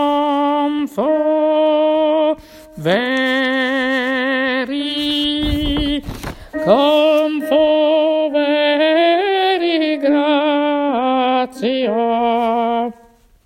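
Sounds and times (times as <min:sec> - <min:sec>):
alto voice singing: 0:00.0 - 0:13.3.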